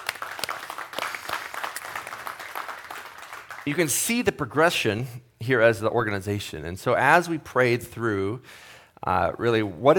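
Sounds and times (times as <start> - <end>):
crowd clapping: 0.0 - 4.2
speech: 3.7 - 9.9.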